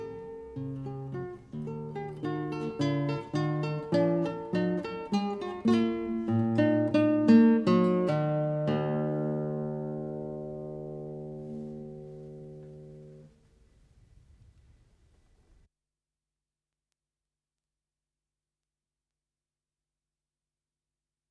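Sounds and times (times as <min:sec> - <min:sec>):
minuet arranged for guitar: 0:00.0 - 0:13.5.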